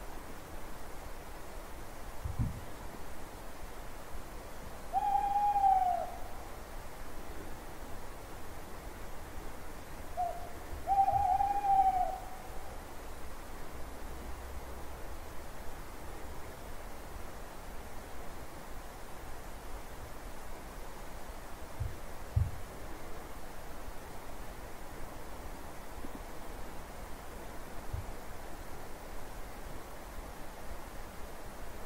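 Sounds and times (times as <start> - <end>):
owl hooting at night: 4.9 - 6.5, 10.2 - 12.8.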